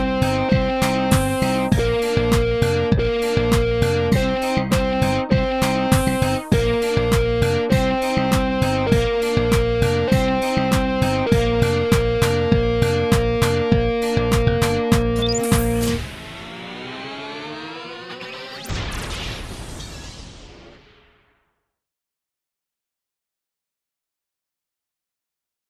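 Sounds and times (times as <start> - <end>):
practice music track in B flat: 0.0 - 16.0.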